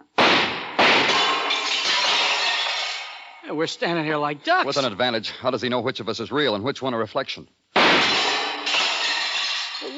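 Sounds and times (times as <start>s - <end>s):
gunshots in a hall of mirrors: 0.1s - 2.4s, 7.8s - 9.2s
mirror glass shattering: 0.4s - 3.4s, 7.8s - 9.9s
speech: 3.5s - 7.6s.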